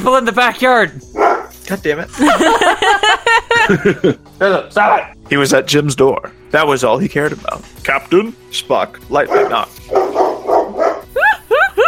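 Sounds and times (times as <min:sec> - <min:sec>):
speech: 0:00.0 - 0:10.2
dog barking and yelping: 0:01.2 - 0:01.5, 0:09.3 - 0:11.1
laughter: 0:02.1 - 0:04.2, 0:11.1 - 0:11.8.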